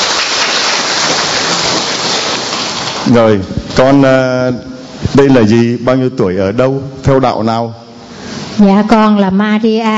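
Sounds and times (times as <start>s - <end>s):
audience applause: 0.0s - 3.2s
speech: 3.1s - 7.8s, 8.6s - 9.9s.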